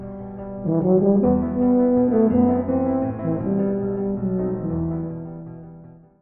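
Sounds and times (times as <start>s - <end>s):
tuba playing Spanish dance: 0.7s - 5.1s.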